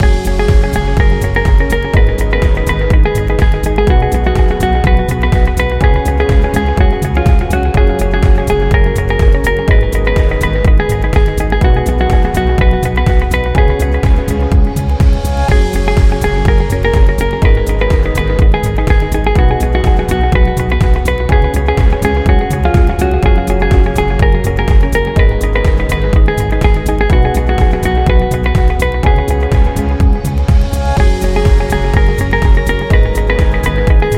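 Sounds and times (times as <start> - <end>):
corporate music loop: 0.0 - 34.1.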